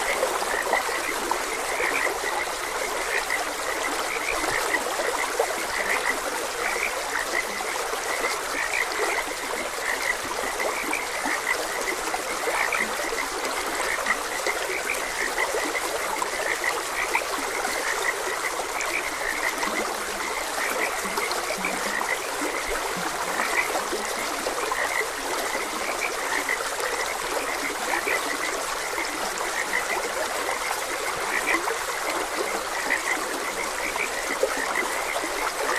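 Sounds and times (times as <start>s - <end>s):
frogs croaking: 0.0s - 35.7s
stream babbling: 0.0s - 35.7s.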